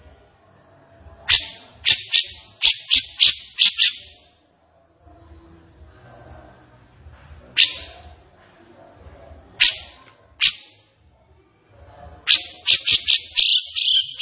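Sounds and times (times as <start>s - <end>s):
captive grey-cheeked bulbul chattering: 1.3s - 4.2s, 12.3s - 14.2s.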